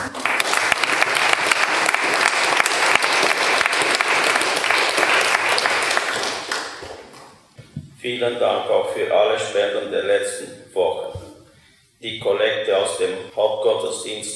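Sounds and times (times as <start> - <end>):
crowd applause: 0.0 - 7.4
speech: 8.1 - 11.1, 12.0 - 14.3.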